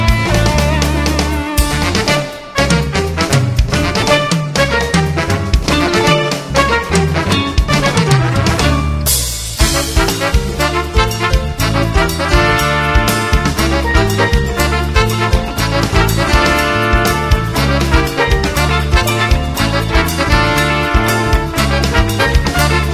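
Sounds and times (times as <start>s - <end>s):
congas playing: 0.0s - 22.9s.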